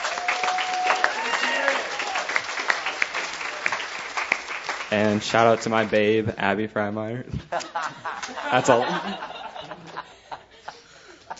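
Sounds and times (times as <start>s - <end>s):
audience applause: 0.0s - 5.9s
speech: 4.9s - 9.4s
laughter: 7.3s - 11.3s.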